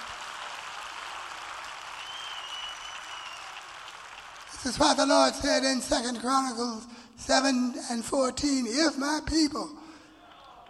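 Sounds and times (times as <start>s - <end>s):
audience clapping hands: 0.0s - 5.2s, 10.2s - 10.6s
speech: 4.6s - 9.8s.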